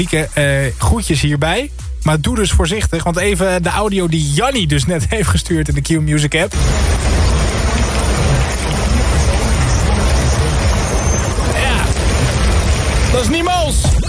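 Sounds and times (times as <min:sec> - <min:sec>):
speech: 0:00.0 - 0:08.6, 0:13.2 - 0:14.0
steady rain: 0:06.5 - 0:13.8
thunder rumbling: 0:06.5 - 0:13.8.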